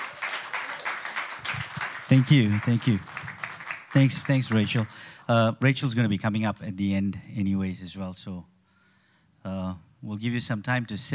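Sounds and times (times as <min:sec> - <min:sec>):
audience applause: 0:00.0 - 0:05.2
speech: 0:02.1 - 0:03.2, 0:03.9 - 0:08.5, 0:09.4 - 0:11.1.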